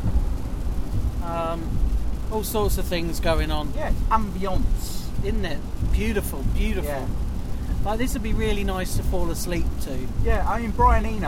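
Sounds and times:
heavy rain: 0.0 - 11.2
wet road surface noise: 0.0 - 11.2
speech: 1.5 - 7.2, 7.8 - 11.2.

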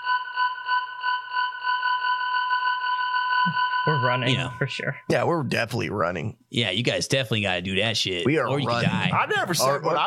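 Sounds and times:
beeping: 0.0 - 5.1
speech: 3.4 - 10.0.

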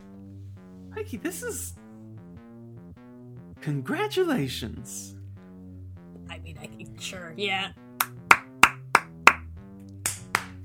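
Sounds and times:
soft steady musical hum: 0.0 - 10.6
speech: 1.0 - 1.8, 3.6 - 5.2, 6.4 - 7.8
sharp hand claps: 8.0 - 10.6.

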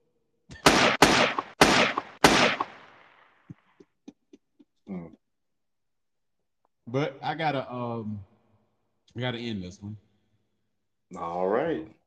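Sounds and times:
gunshots shooting up a club: 0.5 - 3.4
speech: 6.9 - 8.3, 9.2 - 10.0, 11.1 - 12.0.

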